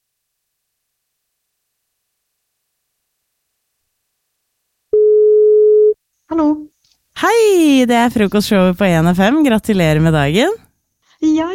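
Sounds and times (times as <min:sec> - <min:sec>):
telephone ringback tone: 0:04.9 - 0:05.9
speech: 0:07.8 - 0:11.5.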